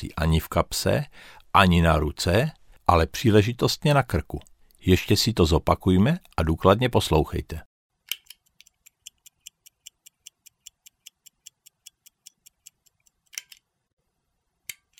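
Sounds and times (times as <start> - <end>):
speech: 0.0 - 7.7
mechanical stopwatch ticking: 8.4 - 13.3.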